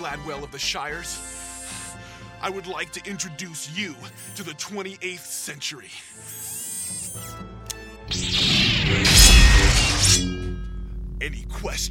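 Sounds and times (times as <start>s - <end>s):
speech: 0.0s - 1.8s, 2.4s - 6.5s, 11.2s - 11.9s
fine steel sword blade taking damage with a grinding crash: 8.1s - 10.7s.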